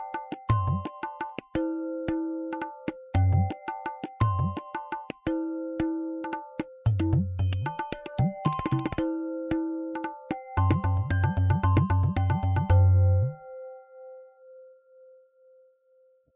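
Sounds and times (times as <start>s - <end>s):
rupak rhythm groove: 0.0s - 13.0s.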